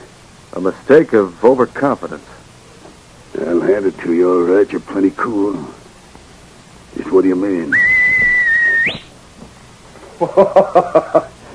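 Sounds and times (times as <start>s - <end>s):
speech: 0.5s - 2.4s, 3.3s - 5.8s, 6.9s - 7.9s, 10.2s - 11.3s
sharp human whistle calling a dog: 7.7s - 9.1s
laughter: 10.2s - 11.4s.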